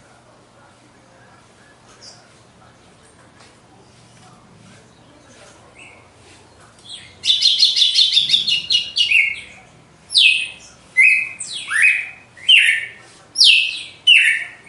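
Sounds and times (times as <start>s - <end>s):
Red-cowled cardinal whistling: 6.9s - 9.5s, 10.1s - 14.6s.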